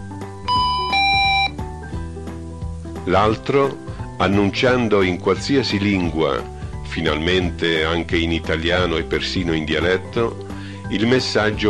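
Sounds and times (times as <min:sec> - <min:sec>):
double electronic chime of a photocell doorbell: 0:00.5 - 0:01.6
speech: 0:03.1 - 0:11.6.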